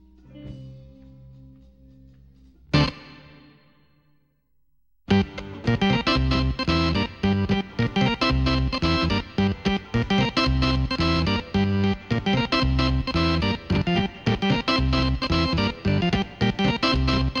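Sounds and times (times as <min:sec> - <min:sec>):
keyboard playing: 0:02.7 - 0:03.8, 0:05.1 - 0:17.3.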